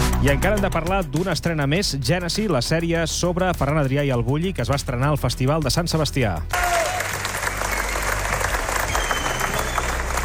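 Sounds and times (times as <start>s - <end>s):
speech: 0.2s - 6.7s
large audience ovation clapping: 6.5s - 10.2s.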